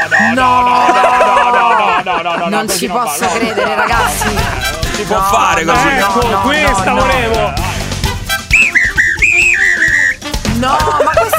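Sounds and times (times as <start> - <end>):
laughter: 0.0 - 7.9, 10.6 - 11.3
speech: 0.2 - 1.2, 2.4 - 7.8, 10.6 - 11.3
dog whistle blasts: 8.5 - 10.2.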